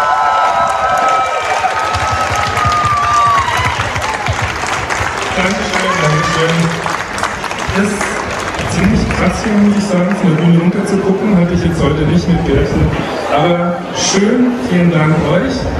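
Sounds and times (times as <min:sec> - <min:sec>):
cheers and whoops: 0:00.0 - 0:04.7, 0:05.4 - 0:06.9
audience applause: 0:00.0 - 0:10.9
speech: 0:09.4 - 0:15.7.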